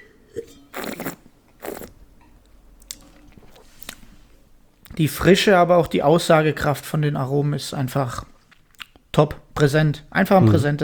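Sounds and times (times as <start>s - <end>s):
wine sipped and slurped during a tasting: 0.3s - 2.0s
speech: 0.4s - 0.6s, 5.0s - 8.3s, 9.2s - 10.8s
mouth sounds: 10.3s - 10.8s.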